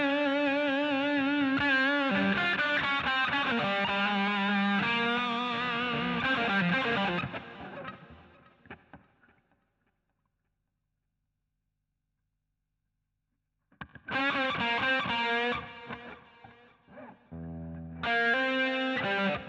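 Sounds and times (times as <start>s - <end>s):
guitar solo: 0.0s - 8.8s, 13.8s - 19.4s.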